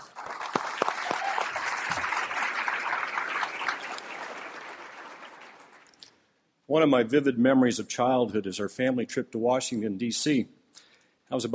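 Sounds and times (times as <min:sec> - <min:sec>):
congregation applause at Wooddale Church welcoming the outreach pastor: 0:00.0 - 0:06.0
speech: 0:06.7 - 0:10.6, 0:11.3 - 0:11.5.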